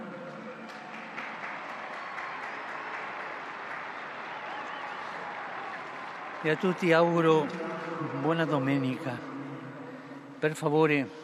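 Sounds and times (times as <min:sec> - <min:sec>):
crowd applauding: 0:00.0 - 0:08.5
speech: 0:06.4 - 0:09.4, 0:10.4 - 0:11.2.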